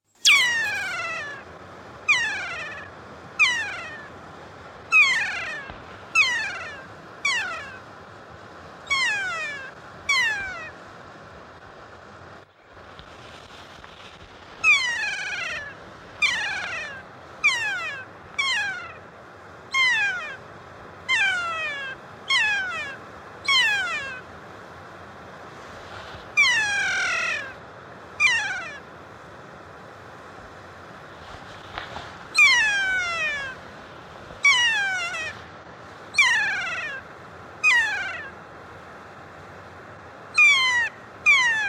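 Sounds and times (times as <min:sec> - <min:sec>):
kea calling: 0:00.0 - 0:04.2, 0:04.8 - 0:07.9, 0:08.8 - 0:10.8, 0:14.5 - 0:24.3, 0:26.2 - 0:29.0, 0:31.3 - 0:38.5, 0:40.2 - 0:41.6.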